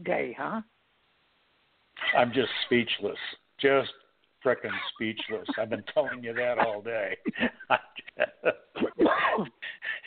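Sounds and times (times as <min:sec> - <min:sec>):
speech: 0:00.0 - 0:00.8, 0:02.0 - 0:10.0
laughter: 0:02.0 - 0:03.1, 0:04.5 - 0:10.0
person coughing: 0:04.6 - 0:07.5, 0:08.8 - 0:09.6.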